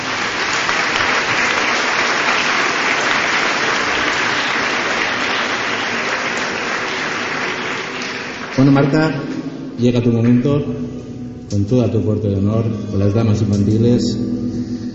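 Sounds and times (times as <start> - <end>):
audience applause: 0.0 - 9.2
speech: 8.6 - 14.4.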